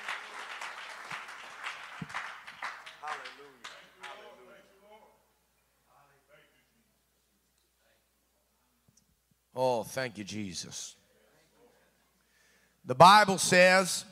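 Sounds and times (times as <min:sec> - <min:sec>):
seated audience clapping hands: 0:00.0 - 0:04.4
speech: 0:09.6 - 0:11.0, 0:12.9 - 0:14.1.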